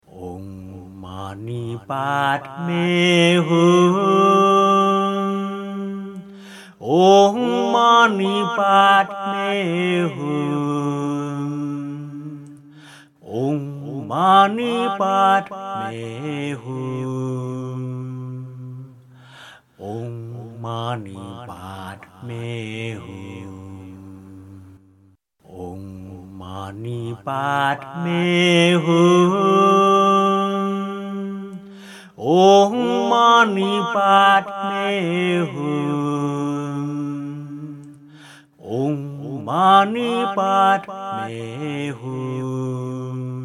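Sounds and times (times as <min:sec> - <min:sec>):
six-syllable mantra chanting: 0:00.0 - 0:24.8, 0:25.4 - 0:43.4.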